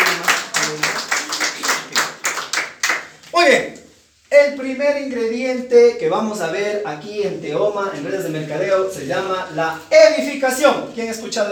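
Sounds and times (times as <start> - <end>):
audience applause: 0.0 - 3.1
speech: 3.4 - 11.4.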